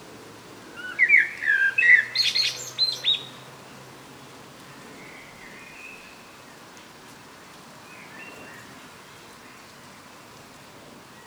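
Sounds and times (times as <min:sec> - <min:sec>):
common blackbird song: 0:00.8 - 0:03.3.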